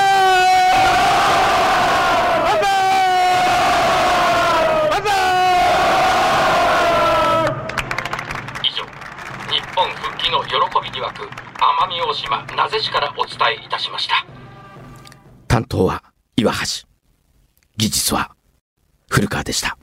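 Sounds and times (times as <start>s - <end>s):
crowd cheering banzai in unison: 0.0s - 15.2s
speech: 12.1s - 14.2s, 15.6s - 16.9s, 17.8s - 18.4s, 19.1s - 19.8s.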